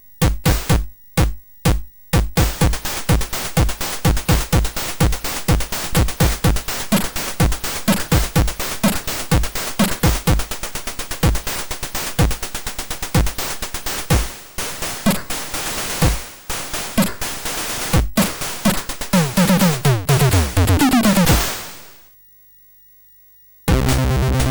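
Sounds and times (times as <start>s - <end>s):
rhythmic MOS6581R3 synth chip sound: 0.2s - 14.3s, 18.2s - 21.5s, 23.7s - 24.5s.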